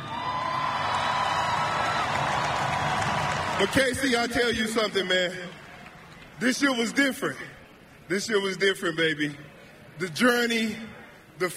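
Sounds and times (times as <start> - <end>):
crowd applause: 0.0 - 6.4
speech: 3.6 - 5.6, 6.4 - 11.5.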